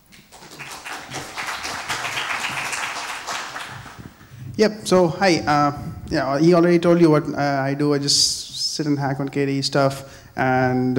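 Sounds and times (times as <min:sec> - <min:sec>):
audience applause for a conference speaker: 0:00.0 - 0:04.5
speech: 0:04.6 - 0:10.9.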